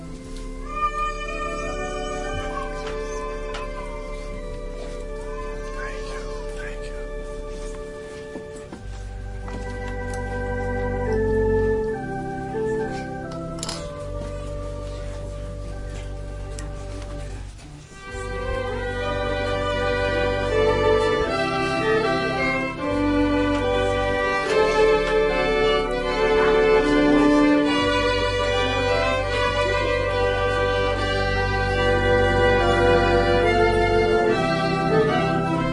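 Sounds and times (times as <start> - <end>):
organ playing a prelude: 0.0 - 35.7
violin playing a prelude: 0.0 - 35.7.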